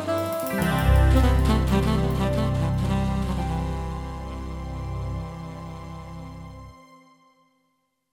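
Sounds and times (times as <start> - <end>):
Yamaha PSR-550 keyboard Sweet Tenor voice demo: 0.0 - 5.4.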